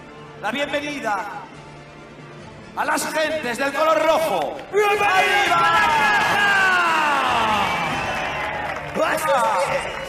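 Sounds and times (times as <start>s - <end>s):
speech: 0.4s - 1.6s, 2.8s - 6.6s, 9.0s - 10.0s
crowd of red team supporters cheering and shouting: 4.7s - 10.0s.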